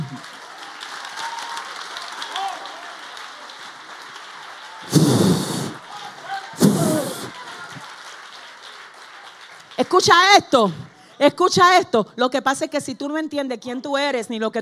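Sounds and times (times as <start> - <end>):
audience applause: 0.0 - 10.0
speech: 9.9 - 14.6.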